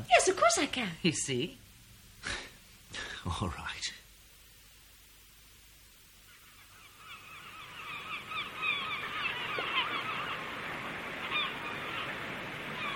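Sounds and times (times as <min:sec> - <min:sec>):
speech: 0:00.5 - 0:01.6, 0:02.2 - 0:04.0
birds calling: 0:06.2 - 0:12.9.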